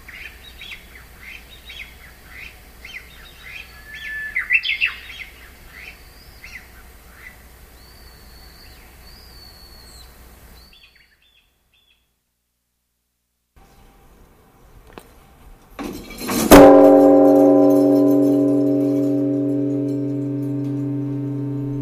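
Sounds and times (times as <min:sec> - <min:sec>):
Japanese bush warbler calling: 0:00.0 - 0:12.0
steady background hiss: 0:00.0 - 0:21.8.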